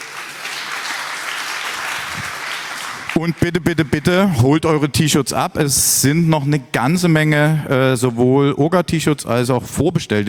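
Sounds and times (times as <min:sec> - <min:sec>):
audience applause: 0:00.0 - 0:04.5
speech: 0:03.2 - 0:10.2.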